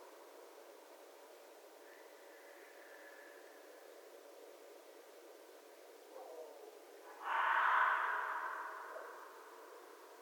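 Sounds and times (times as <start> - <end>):
red fox hoarse rasping scream: 7.1 - 9.4.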